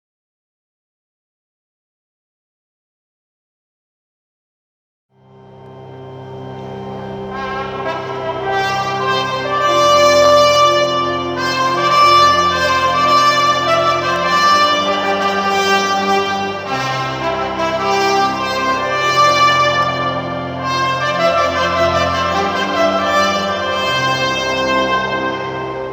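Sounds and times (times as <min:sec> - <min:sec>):
fanfare wedding march: 0:06.7 - 0:25.9.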